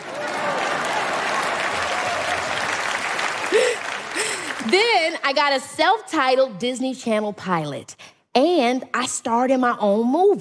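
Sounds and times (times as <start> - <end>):
audience applause: 0.0 - 5.2
speech: 4.7 - 10.4.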